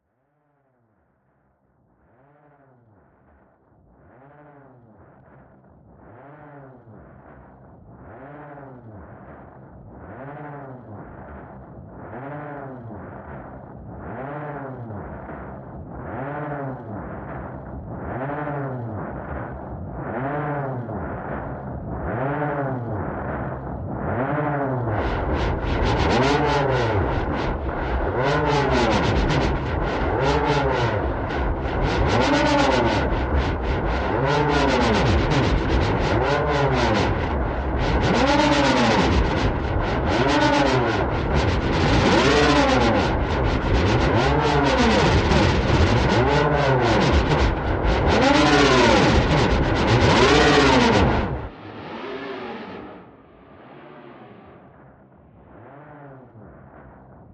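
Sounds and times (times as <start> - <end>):
modulating synth: 11.1 - 56.0.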